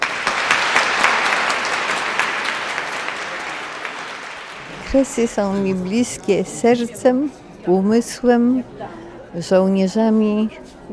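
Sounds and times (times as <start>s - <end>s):
audience applause: 0.0s - 5.6s
speech: 4.9s - 10.9s.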